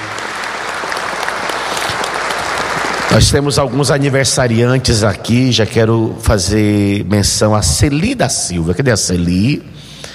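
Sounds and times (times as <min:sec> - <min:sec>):
audience applause at a live radio and internet broadcast event: 0:00.0 - 0:04.1
speech: 0:03.1 - 0:10.1.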